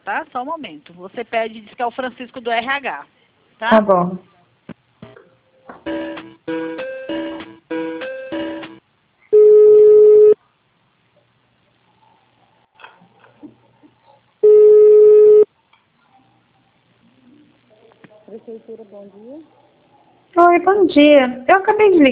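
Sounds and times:
speech: 0:00.1 - 0:04.3, 0:18.6 - 0:19.7, 0:20.4 - 0:22.1
buzzy telephone beeps during a transfer to a city hall PABX switchboard: 0:09.4 - 0:10.4, 0:14.4 - 0:15.5.

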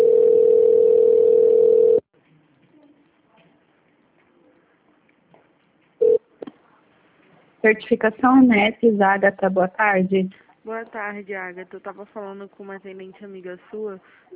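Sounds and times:
telephone line tone while a call connects: 0:00.0 - 0:02.0, 0:06.0 - 0:06.2
speech: 0:07.6 - 0:14.3.

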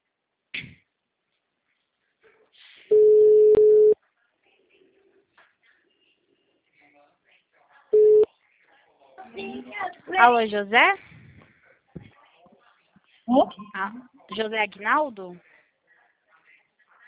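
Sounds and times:
telephone ringback tone while a call is being placed: 0:02.9 - 0:04.0
speech: 0:09.4 - 0:11.1, 0:13.3 - 0:15.5.

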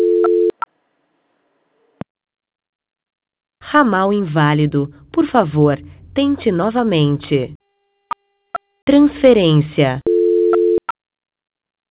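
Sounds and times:
steady low telephone tone during a call transfer: 0:00.0 - 0:00.6, 0:10.0 - 0:10.9
speech: 0:03.7 - 0:07.6, 0:08.8 - 0:10.1.

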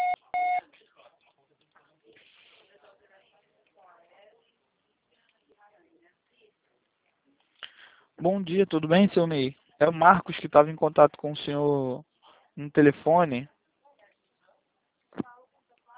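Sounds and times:
voicemail beep tone: 0:00.0 - 0:00.6
speech: 0:08.2 - 0:13.5.

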